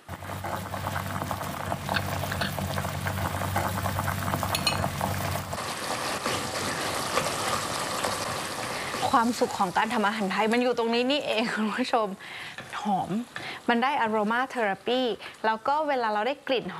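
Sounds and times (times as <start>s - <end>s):
coconut cream simmering with curry paste for a Thai curry: 0.0s - 11.1s
speech: 9.2s - 16.7s.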